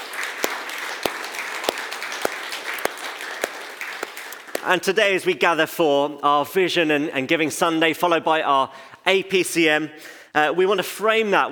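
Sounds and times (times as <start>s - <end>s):
round of applause: 0.0s - 4.8s
speech: 4.6s - 11.5s.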